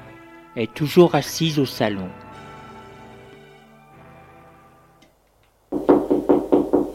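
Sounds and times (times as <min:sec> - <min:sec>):
soft music: 0:00.0 - 0:05.2
speech: 0:00.6 - 0:02.2
firm knocking on a door: 0:05.7 - 0:06.9.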